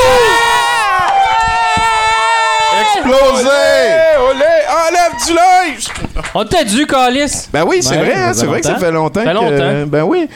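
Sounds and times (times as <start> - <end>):
audience applauding: 0.8 - 6.9
speech: 5.2 - 10.3.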